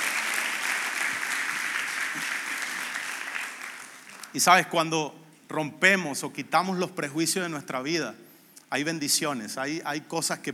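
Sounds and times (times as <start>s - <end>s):
audience applause: 0.0s - 4.3s
speech: 4.4s - 10.5s.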